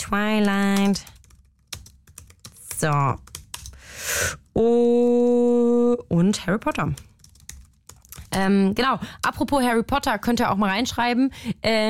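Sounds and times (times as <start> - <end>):
speech: 0.0 - 1.2, 2.8 - 3.3, 4.0 - 7.1, 8.4 - 11.8
typing on a computer keyboard while copying text into a document: 0.0 - 3.8, 6.5 - 8.5.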